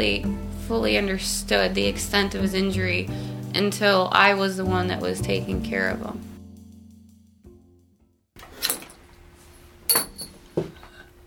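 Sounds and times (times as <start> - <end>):
speech: 0.0 - 6.3
thrown wheelchair brake extender clinking: 9.9 - 10.4.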